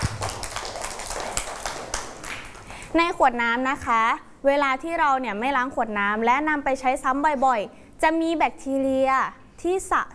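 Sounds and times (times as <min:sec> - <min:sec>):
children clapping hands: 0:00.0 - 0:02.8
speech: 0:02.9 - 0:10.1.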